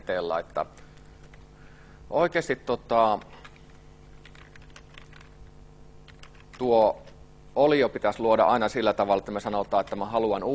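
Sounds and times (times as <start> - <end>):
speech: 0.1 - 0.9, 2.1 - 3.4, 6.6 - 7.0, 7.6 - 10.5
code being typed on a computer keyboard: 3.1 - 7.2, 9.2 - 10.4.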